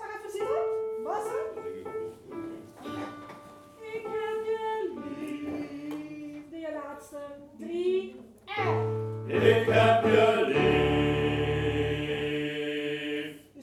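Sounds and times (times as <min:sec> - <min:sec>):
pastorale bass: 0:00.4 - 0:06.4, 0:08.6 - 0:13.4.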